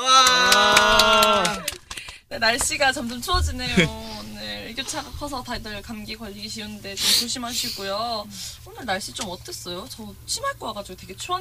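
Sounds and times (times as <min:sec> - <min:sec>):
audience applause: 0:00.0 - 0:02.2
speech: 0:02.4 - 0:11.3.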